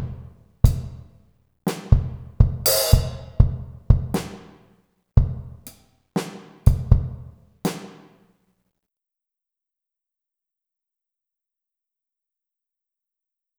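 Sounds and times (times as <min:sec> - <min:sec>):
syncopated funk drum set: 0:00.0 - 0:08.2.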